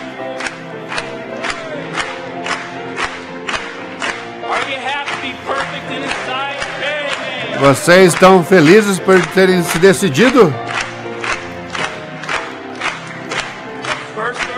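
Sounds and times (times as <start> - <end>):
audience clapping: 0.0 - 14.5
audience cheering: 6.2 - 10.6
speech: 7.6 - 10.6.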